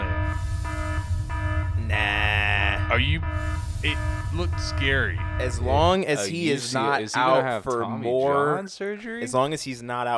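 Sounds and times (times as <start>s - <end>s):
buzzy harmonic alarm sound effect: 0.0s - 6.2s
steady low rumble: 0.0s - 6.5s
speech: 3.0s - 10.1s.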